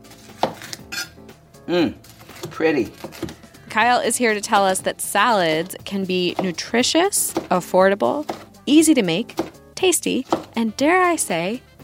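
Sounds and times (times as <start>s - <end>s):
knife chopping bell pepper on a cutting board: 0.2s - 1.1s, 2.3s - 3.4s, 6.2s - 6.6s, 7.2s - 7.6s, 8.2s - 8.5s, 9.2s - 9.6s, 10.2s - 10.6s
speech: 1.7s - 2.0s, 2.6s - 3.0s, 3.7s - 11.7s.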